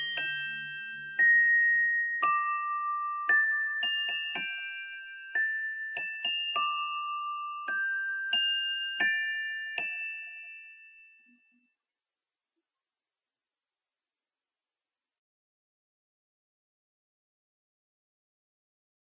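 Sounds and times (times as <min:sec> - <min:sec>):
music clock ticking: 0:00.0 - 0:10.1.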